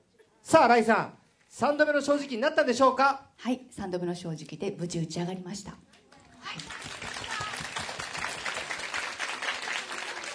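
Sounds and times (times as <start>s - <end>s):
speech: 0.5s - 6.7s
audience applause: 6.4s - 10.3s.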